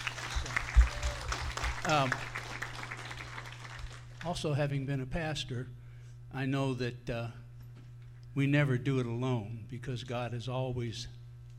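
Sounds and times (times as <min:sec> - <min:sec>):
crowd applauding: 0:00.0 - 0:04.2
speech: 0:01.8 - 0:02.3, 0:04.2 - 0:07.4, 0:08.4 - 0:11.2.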